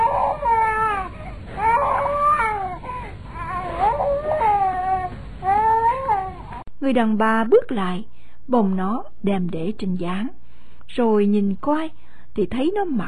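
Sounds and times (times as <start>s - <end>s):
infant crying: 0.0s - 6.6s
speech: 6.9s - 13.0s.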